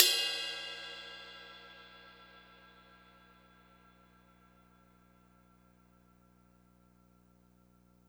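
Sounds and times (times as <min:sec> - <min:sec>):
cymbal: 0:00.0 - 0:06.3.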